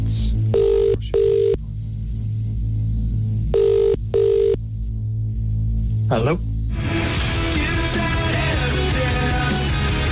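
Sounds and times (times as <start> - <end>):
low throbbing hum: 0.0 - 10.1
telephone line ringing tone after a number is dialled: 0.6 - 1.6, 3.5 - 4.6
speech: 6.1 - 6.5.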